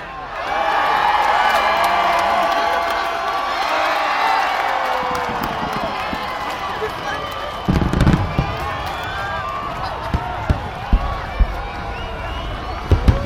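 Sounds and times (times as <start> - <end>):
New Year's Eve crowd in Sydney: 0.0 - 13.2
New Year's Eve fireworks in Sydney: 4.8 - 13.2.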